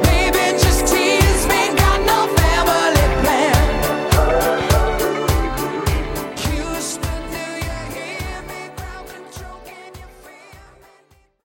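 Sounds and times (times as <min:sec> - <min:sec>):
DJ intro outro music at 103 Bpm: 0:00.2 - 0:08.8.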